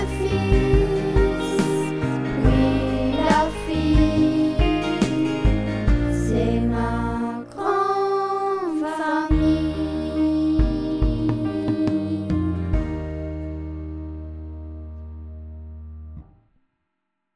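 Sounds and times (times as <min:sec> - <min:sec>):
vocals: 0:00.0 - 0:13.4.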